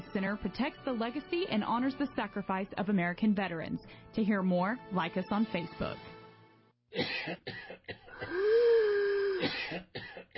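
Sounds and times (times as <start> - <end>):
speech: 0.1 - 6.1, 6.9 - 8.4, 9.4 - 10.0
person coughing: 7.0 - 10.3
wheezing breath with whistling tone: 8.2 - 9.4.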